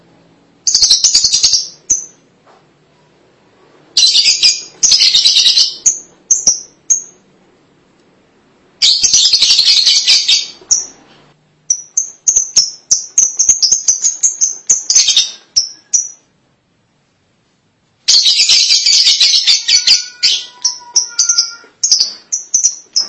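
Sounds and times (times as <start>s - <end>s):
lovebird chattering: 0.7s - 2.2s, 4.0s - 7.2s, 8.8s - 11.0s, 11.7s - 16.3s, 18.1s - 23.0s.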